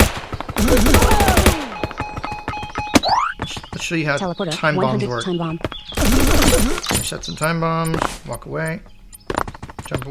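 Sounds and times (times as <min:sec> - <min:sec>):
machine gun fire in a video game: 0:00.0 - 0:01.8, 0:06.0 - 0:06.9
tonal video game effects: 0:00.6 - 0:07.5
speech: 0:03.9 - 0:09.0, 0:09.9 - 0:10.0.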